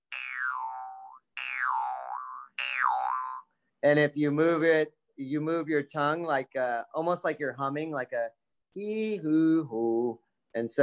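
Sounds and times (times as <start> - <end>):
mouth harp reed being strummed: 0.1 - 3.5
speech: 3.8 - 10.8.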